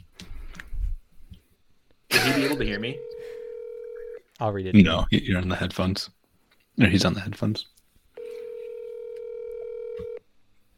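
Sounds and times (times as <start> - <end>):
faint noise: 0.0 - 10.7
speech: 2.3 - 3.1, 4.4 - 6.2, 6.8 - 7.8
telephone ringback tone on an unanswered call: 2.8 - 4.2, 8.2 - 10.2.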